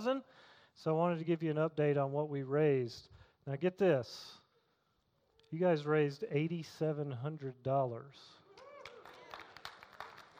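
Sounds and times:
speech: 0.0s - 4.4s, 5.5s - 8.4s
audience clapping: 8.4s - 10.3s.

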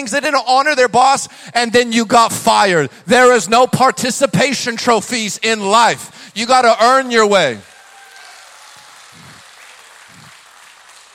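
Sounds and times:
speech: 0.0s - 7.7s
audience applauding: 7.6s - 11.1s.

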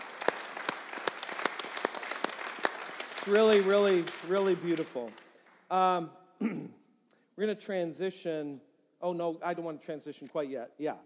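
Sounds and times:
audience applause given as thanks: 0.0s - 5.6s
speech: 3.2s - 6.8s, 7.4s - 11.0s.

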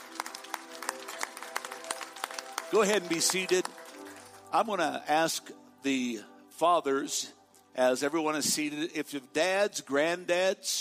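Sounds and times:
audience hand clapping: 0.0s - 4.9s
speech: 2.7s - 3.8s, 4.5s - 10.7s.

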